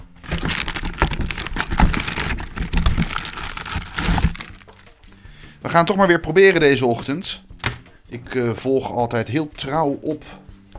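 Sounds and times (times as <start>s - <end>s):
crinkling of a cracker package being opened: 0.0s - 5.1s
speech: 5.6s - 7.5s, 8.1s - 10.4s.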